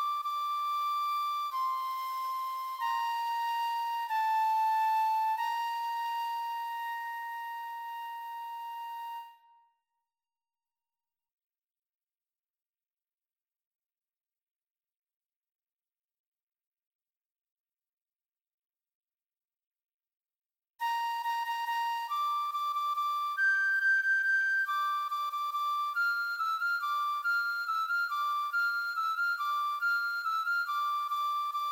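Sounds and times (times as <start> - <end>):
flute: 0.0 - 9.9, 20.8 - 31.7.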